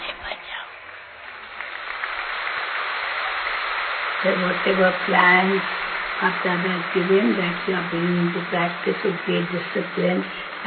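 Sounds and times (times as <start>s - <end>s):
crowd clapping: 0.0s - 10.6s
speech: 4.2s - 10.6s.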